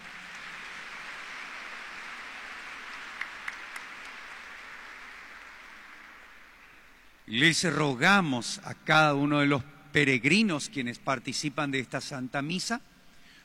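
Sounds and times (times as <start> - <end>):
audience applause: 0.0 - 7.0
speech: 7.3 - 12.9.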